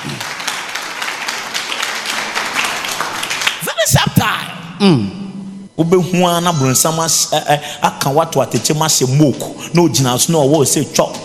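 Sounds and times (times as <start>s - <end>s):
audience clapping on request: 0.0s - 4.2s
speech: 3.9s - 5.2s, 5.8s - 11.2s.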